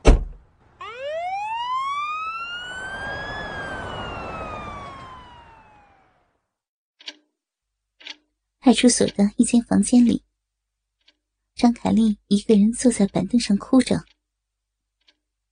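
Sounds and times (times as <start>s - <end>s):
police car siren: 0.7s - 6.6s
speech: 8.7s - 10.3s, 11.8s - 14.2s.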